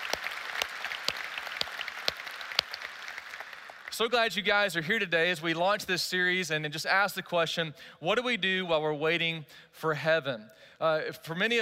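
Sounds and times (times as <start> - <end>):
church congregation in Rockwall applauding: 0.0 - 4.4
speech: 4.0 - 11.6.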